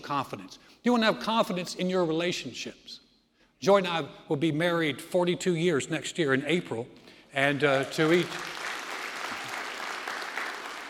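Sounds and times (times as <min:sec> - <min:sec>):
speech: 0:00.0 - 0:03.0, 0:03.6 - 0:08.6
audience clapping during a talk: 0:07.4 - 0:10.8.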